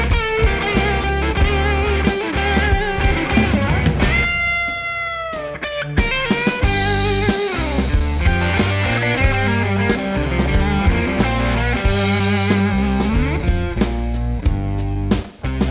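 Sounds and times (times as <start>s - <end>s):
blues slide guitar solos: 0.0s - 15.6s.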